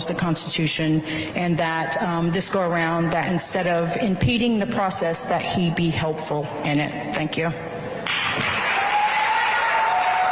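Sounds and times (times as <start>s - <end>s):
speech: 0.0s - 7.7s
applause at a public meeting: 8.4s - 10.3s.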